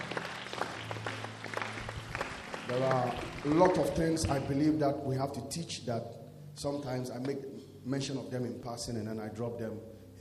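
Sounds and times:
audience clapping hands: 0.0 - 4.7
speech: 2.7 - 10.1.

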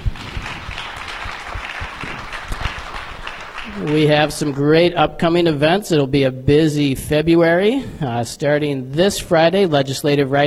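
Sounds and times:
audience applause: 0.0 - 5.0
speech: 3.8 - 10.4.

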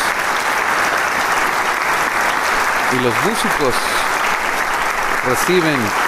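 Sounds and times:
concert audience applause: 0.0 - 6.0
speech: 2.9 - 4.0, 5.2 - 6.0.

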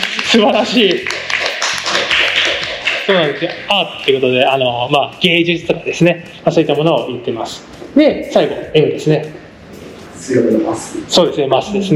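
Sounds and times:
audience applause: 0.0 - 3.7
speech: 0.3 - 1.3, 3.1 - 9.4, 10.2 - 11.9.

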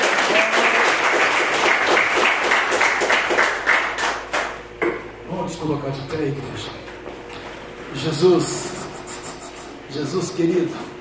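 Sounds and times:
audience applause: 0.0 - 4.6
speech: 5.7 - 6.8, 7.9 - 8.6, 10.0 - 10.9.

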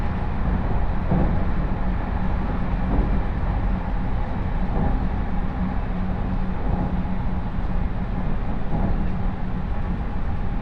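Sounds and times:
rhythmic thumps: 0.0 - 7.1
Chūō West Line train rumble in motion: 0.0 - 10.6.

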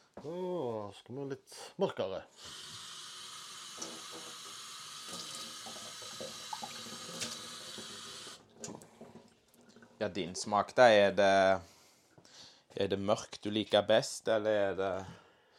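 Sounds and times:
speech: 0.2 - 2.7, 3.8 - 7.4, 10.0 - 11.7, 12.8 - 15.2
tap water running while rinsing glasses: 2.4 - 10.0.

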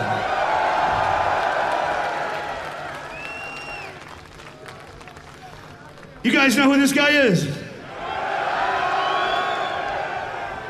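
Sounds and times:
large concert crowd cheering and applauding: 0.0 - 6.5, 7.9 - 10.6
high whistles and whoops: 3.0 - 4.1, 8.9 - 10.0
speech: 6.2 - 7.6.

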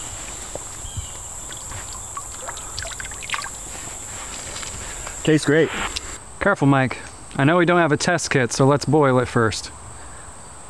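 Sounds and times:
clear, cool stream water flowing: 0.0 - 6.2
speech: 5.2 - 9.8.

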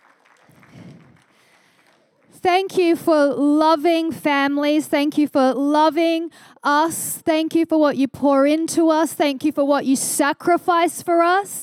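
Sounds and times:
audience applauding: 0.0 - 2.4
speech: 2.4 - 11.6.

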